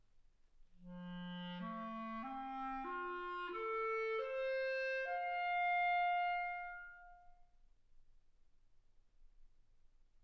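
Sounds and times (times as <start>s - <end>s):
clarinet: 0.8s - 7.4s.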